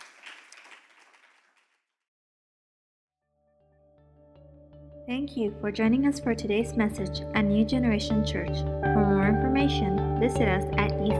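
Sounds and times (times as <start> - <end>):
audience applause: 0.0 - 1.6
speech: 5.1 - 11.1.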